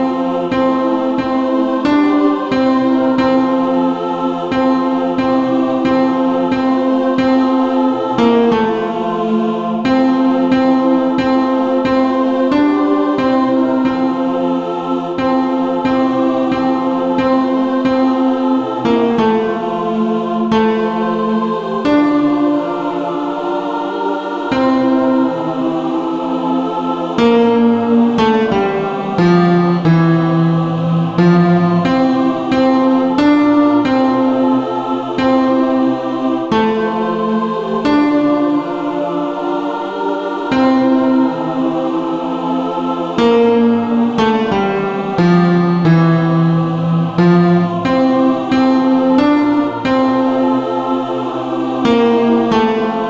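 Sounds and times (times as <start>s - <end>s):
choir tenor voices: 0.2s - 53.0s.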